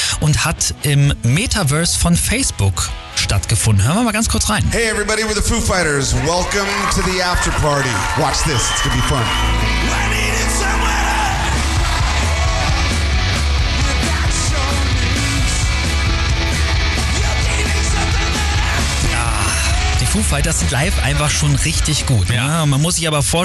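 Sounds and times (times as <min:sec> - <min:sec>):
speech: 0:00.2 - 0:10.0, 0:20.2 - 0:23.4
concert crowd cheering and yelling: 0:04.8 - 0:22.5.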